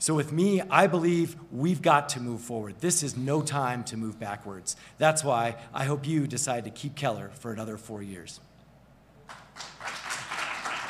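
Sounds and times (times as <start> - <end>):
speech: 0.0 - 8.5
studio audience applause: 9.3 - 10.8.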